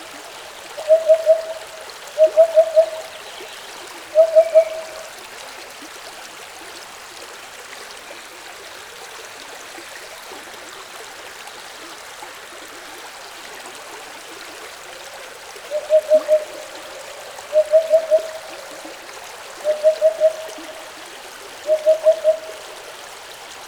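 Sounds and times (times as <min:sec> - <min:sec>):
stream flowing: 0:00.0 - 0:23.6
hoopoe singing by a stream: 0:00.8 - 0:03.1, 0:04.1 - 0:05.1, 0:15.7 - 0:18.9, 0:19.6 - 0:21.0, 0:21.6 - 0:22.6.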